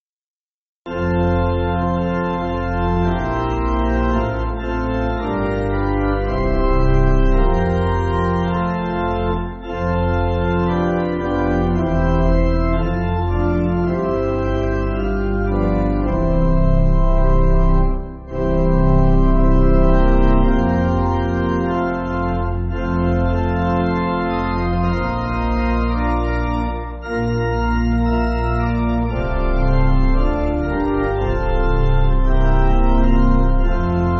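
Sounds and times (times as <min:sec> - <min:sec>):
pipe organ church music: 0:00.9 - 0:34.1.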